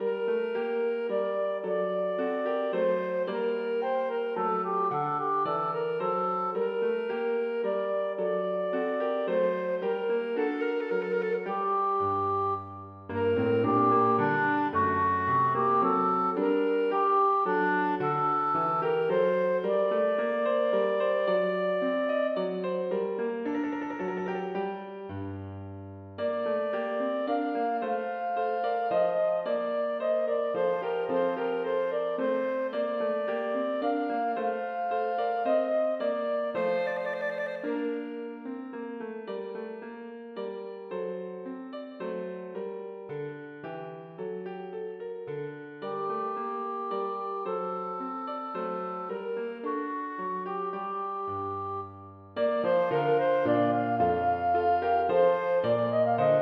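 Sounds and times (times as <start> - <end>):
clarinet and piano minuet: 0.0 - 56.4.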